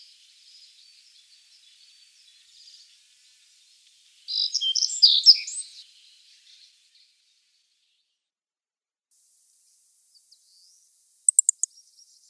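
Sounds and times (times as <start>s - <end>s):
black-faced bunting twittering: 4.3s - 5.7s, 9.7s - 12.2s.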